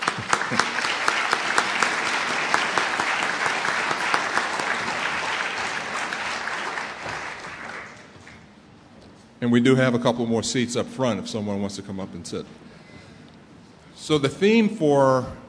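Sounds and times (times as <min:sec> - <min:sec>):
audience applause: 0:00.0 - 0:08.4
speech: 0:09.4 - 0:12.7, 0:14.1 - 0:15.4.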